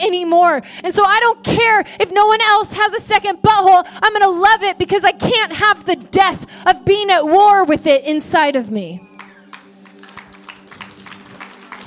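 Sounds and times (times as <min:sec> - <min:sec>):
speech: 0:00.0 - 0:09.1
audience applause: 0:09.2 - 0:11.8.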